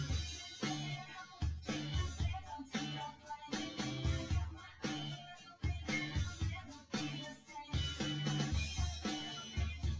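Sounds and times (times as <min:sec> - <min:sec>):
drums: 0:00.0 - 0:09.9.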